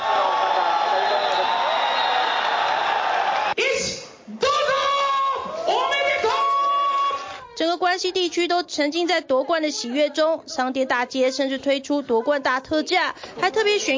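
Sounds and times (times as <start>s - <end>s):
crowd of fans yelling in the street: 0.0s - 7.6s
speech: 8.0s - 13.9s.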